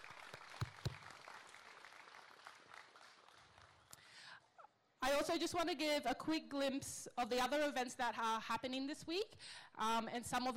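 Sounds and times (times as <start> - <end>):
audience applause: 0.0 - 4.0
speech: 5.2 - 10.5.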